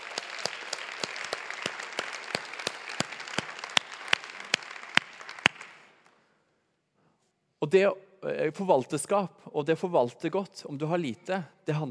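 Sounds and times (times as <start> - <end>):
audience applause: 0.0 - 6.0
speech: 7.6 - 11.8.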